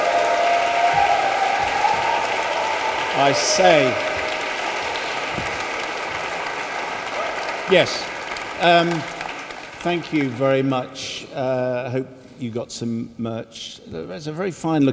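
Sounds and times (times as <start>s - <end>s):
spontaneous audience applause: 0.0s - 11.1s
speech: 3.2s - 4.1s, 7.7s - 9.2s, 9.8s - 14.9s.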